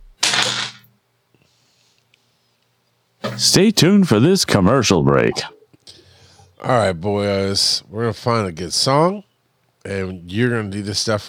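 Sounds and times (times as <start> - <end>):
dice rattling: 0.2 - 0.8
speech: 3.4 - 5.6, 6.6 - 11.2.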